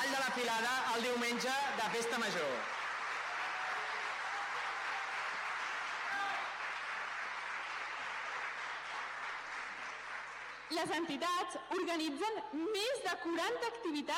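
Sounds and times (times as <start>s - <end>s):
speech: 0.4s - 2.8s, 10.7s - 14.1s
crowd applauding: 1.0s - 11.0s.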